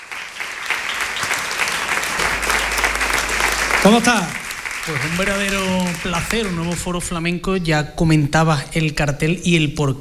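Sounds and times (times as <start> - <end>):
audience applause: 0.0 - 7.2
speech: 3.8 - 9.9.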